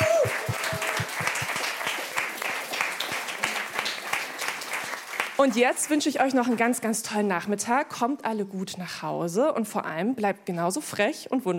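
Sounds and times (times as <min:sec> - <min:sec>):
audience applause: 0:00.0 - 0:05.7
speech: 0:05.4 - 0:11.5.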